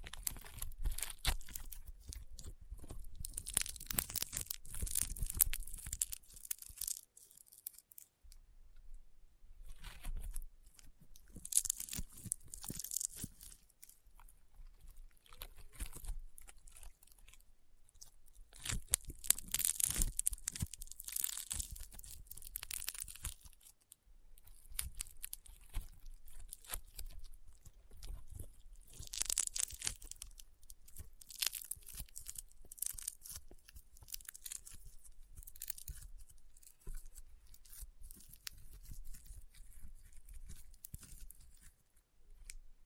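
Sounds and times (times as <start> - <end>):
crunchy popping slime being squeezed and pressed: 0.0 - 8.2, 9.7 - 23.8, 24.4 - 41.8.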